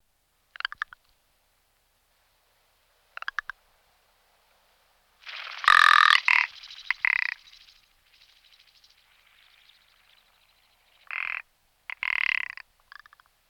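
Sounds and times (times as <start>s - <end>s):
rock ptarmigan croaking rattle: 5.2s - 13.3s.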